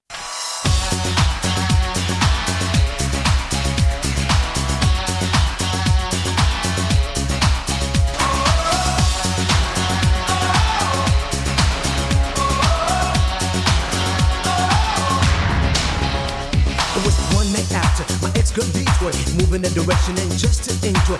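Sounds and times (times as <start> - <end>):
disco music: 0.1 - 21.1.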